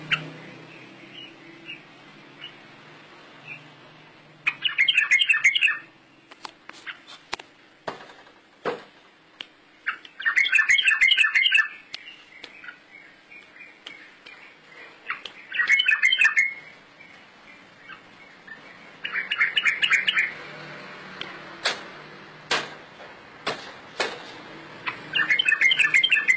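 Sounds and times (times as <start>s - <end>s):
bird chirping: 0.0s - 7.1s, 9.6s - 20.6s, 24.8s - 26.3s
sharp knocks: 21.6s - 21.9s, 22.5s - 24.3s.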